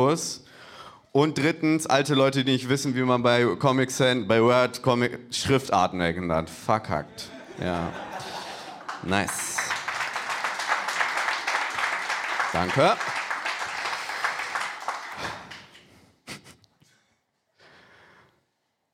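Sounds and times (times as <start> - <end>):
speech: 0.0 - 0.5, 1.2 - 8.3, 9.0 - 9.5, 12.6 - 13.1
laughter: 7.0 - 9.8
audience applause: 7.7 - 15.9.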